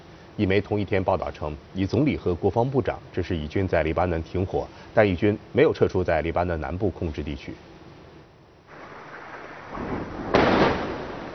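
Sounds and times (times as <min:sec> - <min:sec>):
speech: 0:00.4 - 0:07.7
huge explosion from airstrike: 0:08.7 - 0:11.3.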